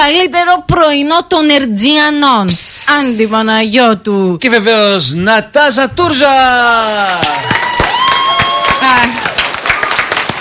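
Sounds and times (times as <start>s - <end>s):
speech: 0.1s - 7.8s, 8.9s - 9.3s
applause: 6.7s - 10.4s.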